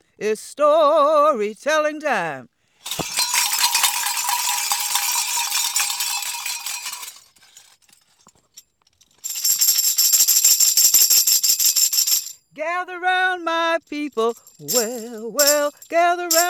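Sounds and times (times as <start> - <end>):
speech: 0.2 - 3.0, 12.8 - 16.4
bells ringing: 2.9 - 7.3, 14.3 - 16.4.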